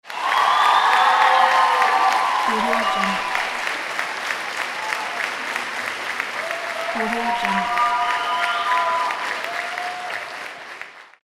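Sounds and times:
audience ovation: 0.0s - 11.2s.

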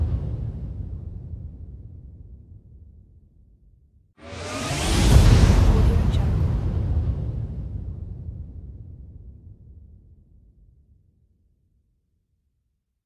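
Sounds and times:
riser: 4.2s - 6.9s
impact hit: 4.2s - 8.8s
whoosh: 4.2s - 9.5s.

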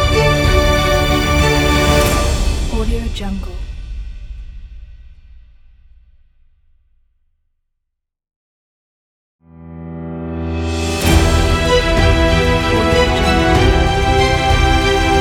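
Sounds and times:
inspiring epic music: 0.0s - 4.1s, 9.6s - 15.1s.

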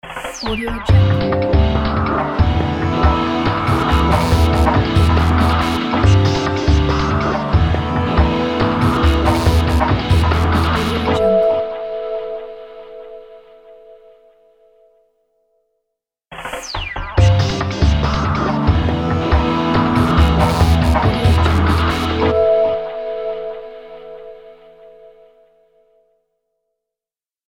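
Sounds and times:
podcast opener music: 0.1s - 11.7s, 16.4s - 22.6s.

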